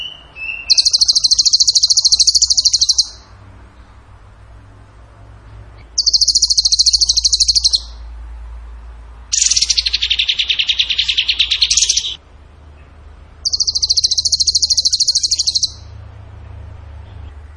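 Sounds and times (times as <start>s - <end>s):
songbird trilling in high rattling bursts: 0.0s - 3.3s, 5.8s - 8.1s, 9.3s - 12.2s, 13.4s - 16.0s.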